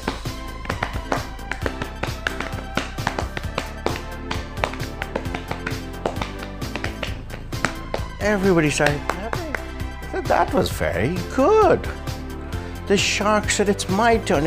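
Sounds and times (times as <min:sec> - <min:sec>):
tap dancing: 0:00.0 - 0:10.7
speech: 0:08.2 - 0:09.1, 0:10.2 - 0:12.0, 0:12.9 - 0:14.4.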